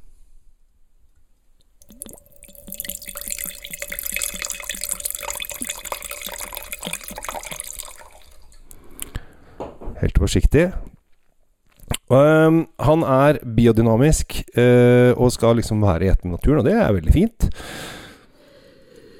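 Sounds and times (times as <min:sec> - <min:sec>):
faint drips: 0:01.6 - 0:09.2
red wine pouring into a glass: 0:01.8 - 0:08.8
speech: 0:10.1 - 0:10.9, 0:12.1 - 0:17.9.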